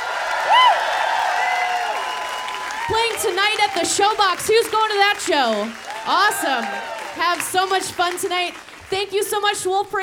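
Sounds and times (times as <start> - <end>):
crowd applauding and cheering: 0.0 - 9.6
rising-and-falling whoop or whistle: 0.4 - 2.9
speech: 2.9 - 10.0.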